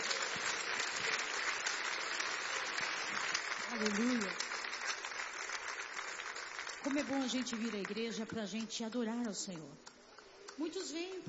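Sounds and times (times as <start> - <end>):
church audience applauding: 0.0 - 8.3
speech: 3.7 - 4.4, 6.9 - 9.9, 10.6 - 11.2.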